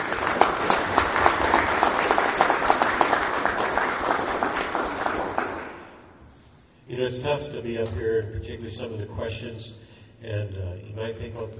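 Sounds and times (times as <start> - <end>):
audience applause for candidates: 0.0 - 6.0
speech: 7.1 - 11.5.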